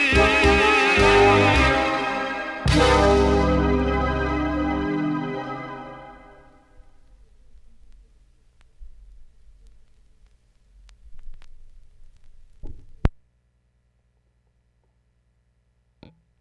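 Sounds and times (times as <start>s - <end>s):
tango music: 0.0s - 6.6s.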